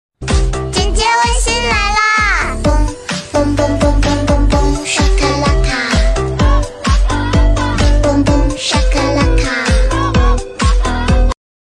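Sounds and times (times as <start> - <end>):
Chinese TikTok remix: 0.2 - 11.4.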